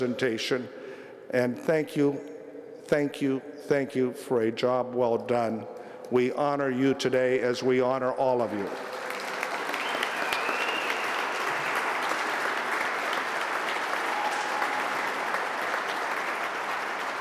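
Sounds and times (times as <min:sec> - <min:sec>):
speech: 0:00.0 - 0:02.3, 0:02.9 - 0:09.0
audience applause: 0:08.6 - 0:17.2.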